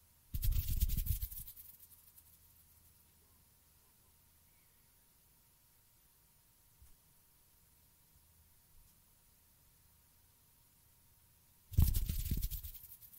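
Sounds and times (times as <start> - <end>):
faint low hum: 0.0 - 13.1
hands rustling: 0.4 - 2.6, 11.8 - 13.1.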